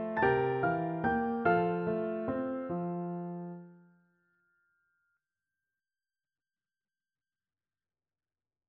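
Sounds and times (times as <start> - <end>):
piano duet: 0.0 - 3.9.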